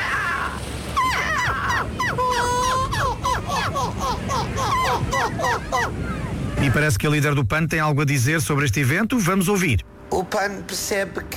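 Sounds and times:
person imitating seagull calls: 0.0s - 6.7s
speech: 6.6s - 11.3s.

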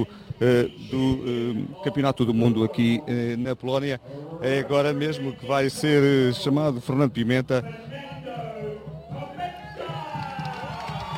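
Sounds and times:
speech: 0.0s - 8.0s
crowd applauding and cheering a champion: 9.1s - 11.1s.

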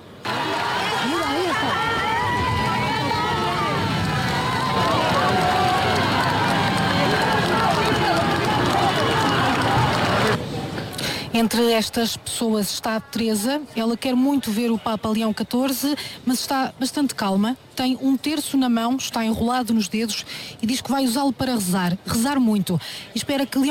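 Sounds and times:
large crowd shouting and cheering: 0.0s - 10.4s
people clapping: 0.2s - 10.4s
speech: 11.4s - 23.6s.

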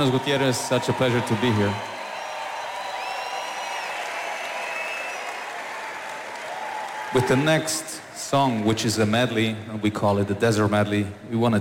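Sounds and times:
speech: 0.0s - 2.0s, 7.1s - 11.6s
audience applause: 0.0s - 8.8s
high piercing whistles: 1.5s - 5.4s.

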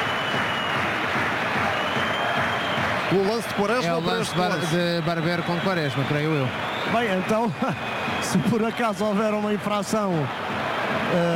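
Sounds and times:
stadium crowd applauding: 0.0s - 11.3s
speech: 3.1s - 10.5s, 11.1s - 11.3s.

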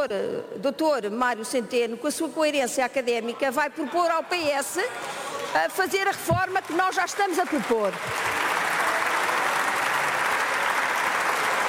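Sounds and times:
speech: 0.0s - 8.4s
loud applause in parliament: 6.5s - 11.6s.

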